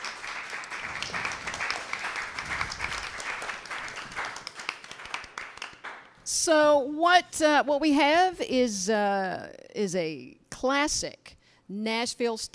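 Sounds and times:
audience applause: 0.0s - 6.1s
speech: 6.4s - 12.5s.

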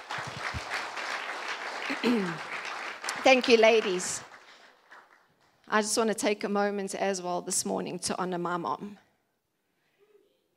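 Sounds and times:
crowd applauding: 0.0s - 5.6s
speech: 2.0s - 2.5s, 3.2s - 4.3s, 5.7s - 9.0s.

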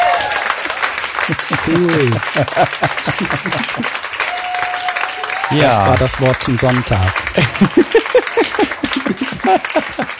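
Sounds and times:
laughter: 0.0s - 4.0s, 5.6s - 10.1s
applause: 0.0s - 10.1s
speech: 1.3s - 4.1s, 5.5s - 10.1s.

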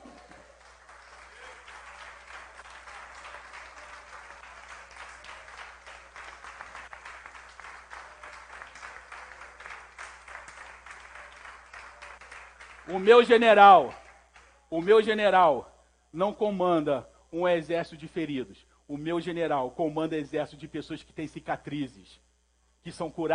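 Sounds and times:
audience applauding: 0.0s - 14.5s
speech: 12.9s - 14.0s, 14.7s - 22.2s, 22.8s - 23.3s.

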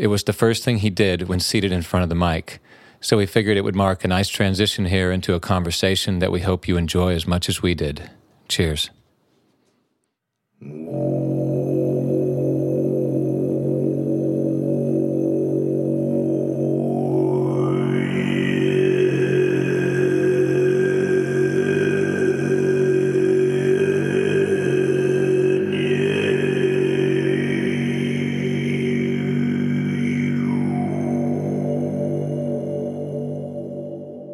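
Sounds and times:
speech: 0.0s - 9.0s, 10.6s - 11.2s
Tibetan throat singing drone: 10.6s - 34.3s.

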